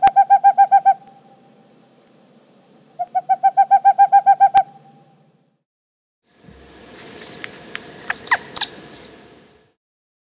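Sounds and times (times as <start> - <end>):
Boreal Owl calling: 0.0 - 1.4, 3.0 - 5.2, 8.0 - 9.2.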